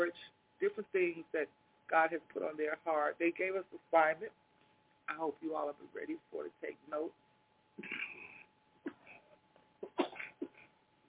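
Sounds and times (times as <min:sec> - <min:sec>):
speech: 0:00.0 - 0:04.4, 0:05.1 - 0:07.2, 0:07.8 - 0:08.4
person coughing: 0:07.8 - 0:10.7.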